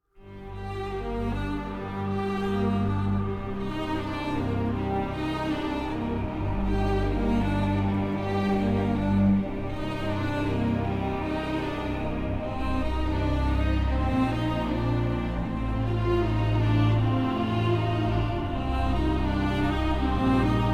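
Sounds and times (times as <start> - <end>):
instrumental music: 0.2 - 20.7.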